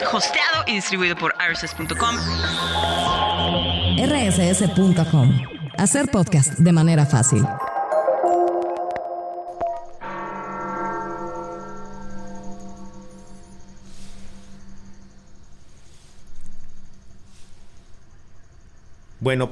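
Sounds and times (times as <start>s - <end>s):
speech: 0.1s - 7.7s, 19.2s - 19.4s
cathedral bells pealing: 7.2s - 16.2s
steady hiss: 10.8s - 19.4s.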